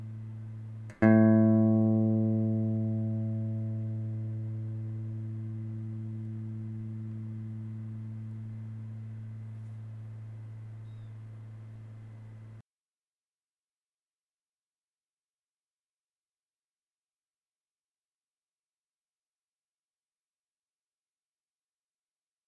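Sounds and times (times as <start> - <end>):
electric guitar fifth string A note for tuning: 0.0 - 12.6.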